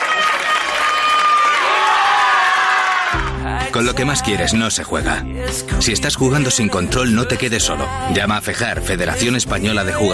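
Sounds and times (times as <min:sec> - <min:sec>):
crowd cheering and whooping at a wedding: 0:00.0 - 0:03.4
speech: 0:03.8 - 0:10.1.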